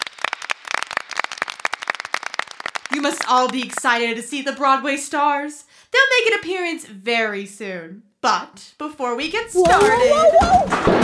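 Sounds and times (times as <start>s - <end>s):
round of applause: 0.0s - 3.8s
speech: 2.9s - 11.0s.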